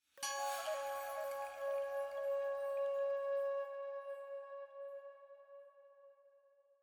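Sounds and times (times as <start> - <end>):
flute chime jingle in C sharp: 0.2 - 5.2.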